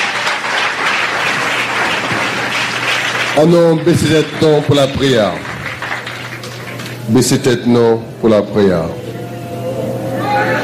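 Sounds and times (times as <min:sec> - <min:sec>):
church congregation clapping: 0:00.0 - 0:07.5
speech: 0:03.4 - 0:05.5, 0:07.1 - 0:09.0
church congregation raised voices acclaiming: 0:09.0 - 0:10.6.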